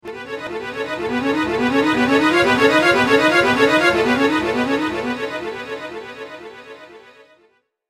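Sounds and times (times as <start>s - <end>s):
fantasy jingle: 0.3s - 6.5s.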